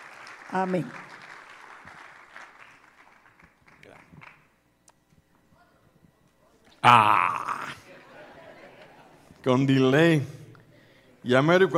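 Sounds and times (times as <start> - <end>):
audience applause: 0.0 - 4.5
speech: 0.5 - 1.1, 6.8 - 7.4, 9.4 - 10.4, 11.2 - 11.7
laughter: 6.9 - 9.4.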